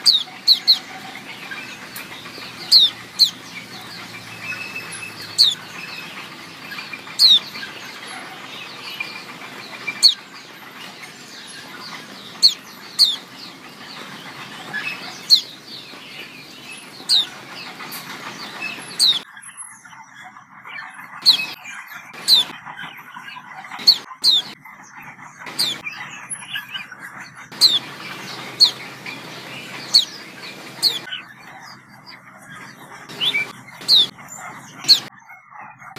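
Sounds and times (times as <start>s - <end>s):
white-eye chirping: 0.0s - 19.3s, 21.0s - 35.1s.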